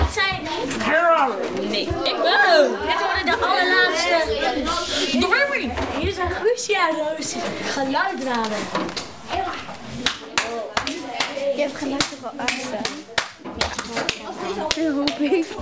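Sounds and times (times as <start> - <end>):
speech: 0.8 - 9.7, 11.6 - 13.1, 13.9 - 15.5
applause, clapping hands: 10.0 - 15.4.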